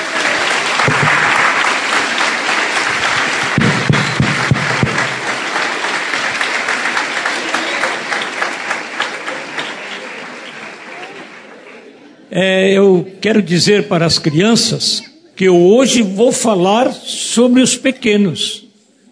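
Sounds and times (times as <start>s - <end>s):
audience applause for children: 0.0s - 12.3s
speech: 12.4s - 18.6s.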